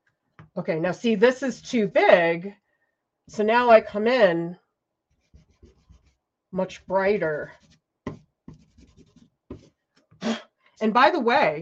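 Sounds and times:
speech: 0:00.6 - 0:02.6, 0:03.3 - 0:04.6, 0:06.5 - 0:07.8, 0:10.8 - 0:11.6
drawing tool pressed hard onto paper on a drawing board: 0:05.1 - 0:09.8.

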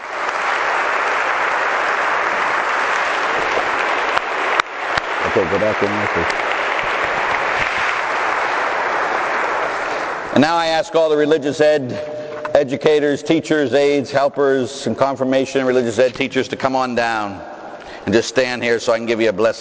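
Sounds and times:
audience applauding: 0:00.0 - 0:10.4
speech: 0:05.4 - 0:06.6, 0:10.4 - 0:19.6.

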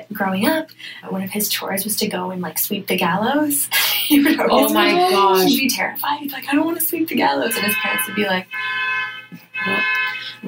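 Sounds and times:
speech: 0:00.2 - 0:08.8
laughter: 0:04.1 - 0:05.6
car alarm blaring: 0:07.4 - 0:10.4.

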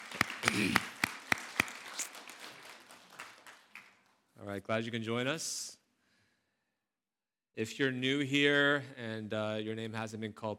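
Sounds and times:
audience clapping to welcome a couple: 0:00.0 - 0:04.2
speech: 0:04.5 - 0:05.8, 0:07.6 - 0:10.5.

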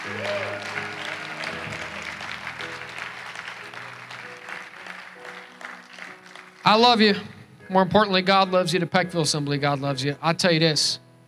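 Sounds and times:
scattered shouts and cheers of praise: 0:00.0 - 0:02.4
audience clapping: 0:00.0 - 0:07.2
speech: 0:00.1 - 0:00.4, 0:06.7 - 0:11.0.

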